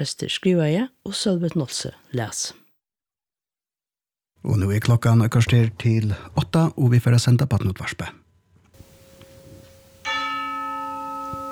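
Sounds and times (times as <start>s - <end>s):
speech: 0.0s - 2.6s, 4.4s - 8.2s
church bell ringing: 8.8s - 11.5s.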